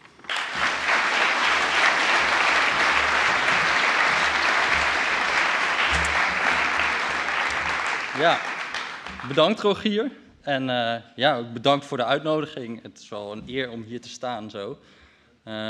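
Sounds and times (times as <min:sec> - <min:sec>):
applause: 0:00.0 - 0:09.9
speech: 0:08.2 - 0:08.5, 0:09.2 - 0:15.6.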